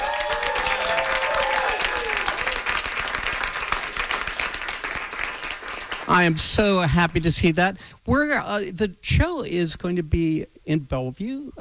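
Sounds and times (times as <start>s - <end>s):
audience applause: 0.0s - 6.4s
speech: 6.1s - 11.5s.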